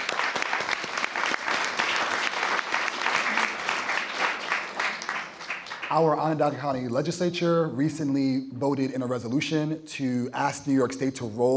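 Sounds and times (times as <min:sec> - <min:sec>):
round of applause: 0:00.0 - 0:06.4
speech: 0:05.9 - 0:11.5.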